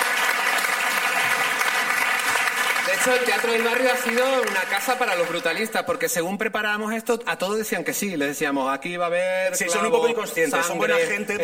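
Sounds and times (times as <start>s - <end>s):
audience applause for Teatro del Barrio's National Theatre Prize: 0.0s - 5.8s
speech: 3.0s - 11.4s.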